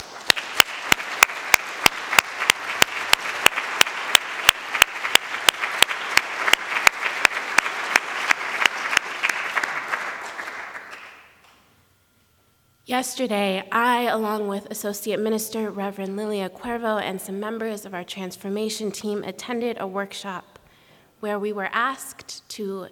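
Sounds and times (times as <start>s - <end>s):
audience applause: 0.0s - 11.3s
rhythmic louder claps: 0.0s - 11.7s
speech: 12.9s - 20.5s, 21.2s - 22.9s.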